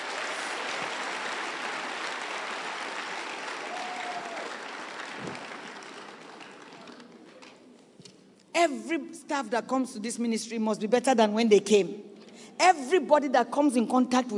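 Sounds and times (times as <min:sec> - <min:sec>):
audience clapping: 0:00.0 - 0:08.0
speech: 0:08.6 - 0:14.3.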